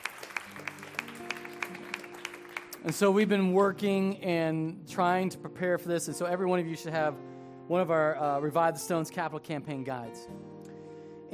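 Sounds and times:
audience clapping: 0.0s - 3.4s
speech: 2.8s - 10.5s.

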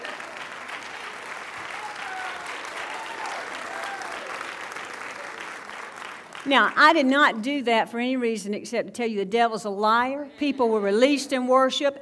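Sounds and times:
large audience applause: 0.0s - 6.5s
faint cheers: 1.6s - 4.5s
speech: 6.4s - 12.0s.

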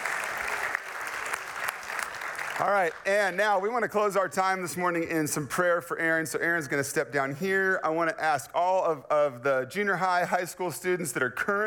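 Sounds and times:
crowd applauding: 0.0s - 3.1s
speech: 2.6s - 11.6s.

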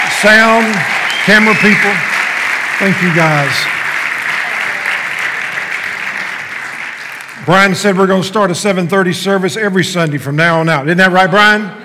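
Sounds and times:
audience applause: 0.0s - 7.6s
speech: 0.2s - 2.1s, 2.8s - 3.8s, 7.5s - 11.8s.

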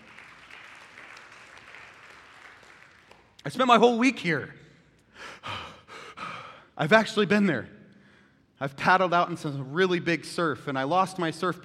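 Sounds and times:
audience clapping: 0.0s - 3.6s
speech: 3.4s - 4.6s, 6.8s - 7.8s, 8.6s - 11.6s.

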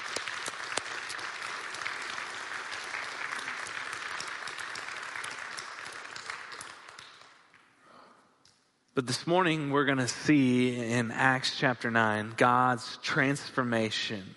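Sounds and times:
audience applause: 0.0s - 7.4s
speech: 9.0s - 14.3s.

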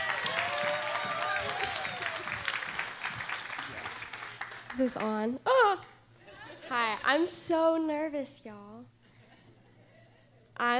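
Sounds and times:
high voices whooping and calling out: 0.0s - 2.6s
audience applause: 0.0s - 5.1s
speech: 4.8s - 5.7s, 6.7s - 8.9s, 10.6s - 10.7s.

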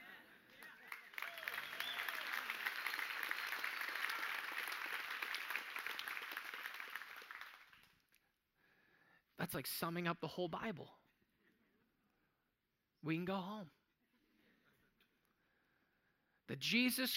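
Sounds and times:
audience applause: 0.0s - 8.0s
speech: 9.5s - 11.0s, 13.0s - 13.8s, 16.5s - 17.1s.

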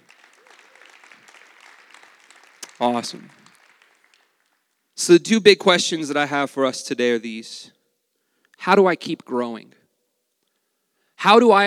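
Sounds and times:
audience applauding: 0.0s - 5.0s
speech: 2.8s - 3.4s, 5.0s - 7.8s, 8.6s - 9.8s, 11.2s - 11.6s.

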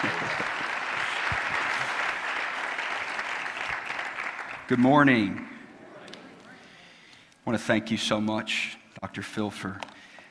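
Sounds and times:
speech: 0.0s - 0.4s, 4.7s - 5.5s, 7.5s - 9.9s
church congregation applauding to welcome a guest speaker: 0.0s - 6.8s.

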